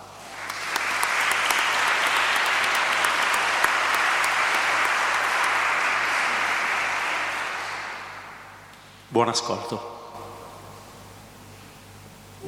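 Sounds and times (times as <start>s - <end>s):
audience applause after organ performance: 0.0s - 8.5s
speech: 9.1s - 10.0s.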